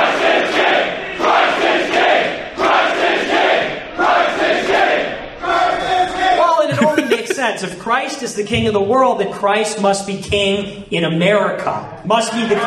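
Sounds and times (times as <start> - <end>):
large crowd chanting: 0.0 - 7.4
laughter: 6.6 - 7.7
lone voice rising above the crowd: 6.7 - 7.4
speech: 7.8 - 12.6.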